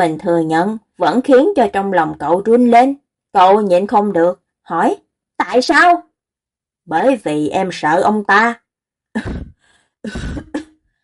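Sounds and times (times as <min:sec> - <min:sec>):
speech: 0:00.0 - 0:06.0, 0:06.9 - 0:08.6, 0:09.2 - 0:10.6
dry cough: 0:09.2 - 0:10.7.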